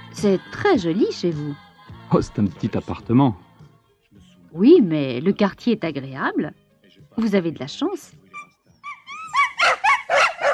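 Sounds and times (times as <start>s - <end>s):
speech: 0.2s - 3.4s, 4.5s - 6.6s, 7.2s - 8.2s
two dogs barking in a bedroom: 8.3s - 10.5s.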